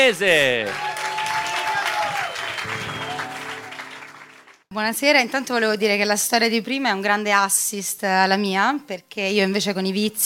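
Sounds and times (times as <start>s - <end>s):
speech: 0.0s - 0.9s, 4.7s - 10.2s
audience applause: 0.2s - 4.7s.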